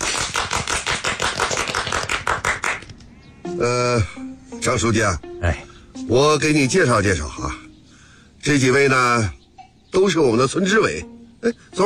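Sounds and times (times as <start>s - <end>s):
small group clapping: 0.0s - 3.1s
speech: 3.6s - 7.6s, 8.4s - 11.8s.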